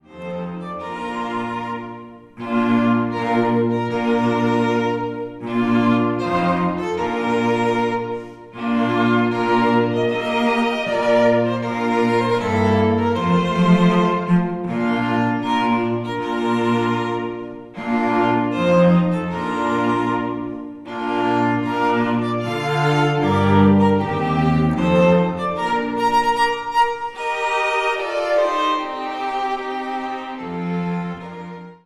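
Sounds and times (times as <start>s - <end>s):
string quartet: 0.0s - 31.8s.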